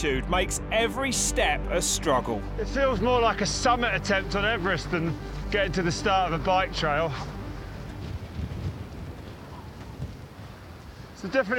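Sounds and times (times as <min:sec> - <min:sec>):
speech: 0:00.0 - 0:07.4, 0:11.2 - 0:11.5
strong cold wind at high altitude on a volcano's slope below the crater: 0:02.8 - 0:11.5.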